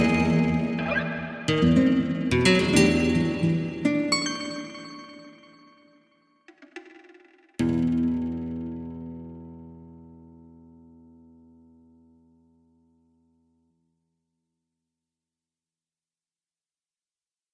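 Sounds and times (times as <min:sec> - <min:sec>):
guitar: 0:00.0 - 0:06.2, 0:07.6 - 0:13.4.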